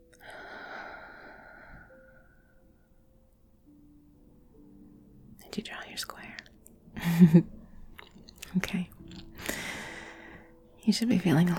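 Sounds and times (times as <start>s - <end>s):
faint low tones: 0.0s - 11.5s
person breathing in deeply during a guided breathing exercise: 0.2s - 2.8s, 9.4s - 10.6s
speech: 5.5s - 7.6s, 10.9s - 11.5s.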